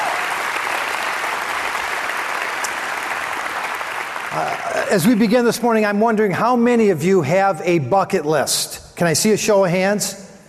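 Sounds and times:
audience applause: 0.0s - 5.5s
speech: 4.3s - 10.2s.

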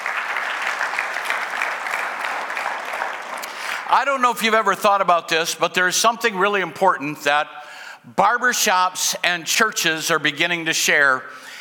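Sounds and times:
church congregation clapping hands: 0.0s - 4.8s
speech: 3.9s - 11.5s.

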